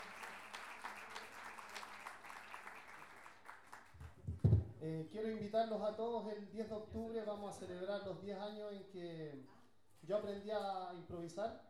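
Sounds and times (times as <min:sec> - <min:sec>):
audience applauding an improvising verse performer on stage at a championship: 0:00.0 - 0:04.4
speech: 0:04.8 - 0:11.6.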